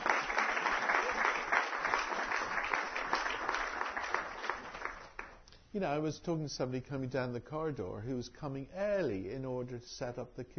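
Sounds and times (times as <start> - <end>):
audience applause: 0.0 - 5.4
speech: 5.8 - 10.5.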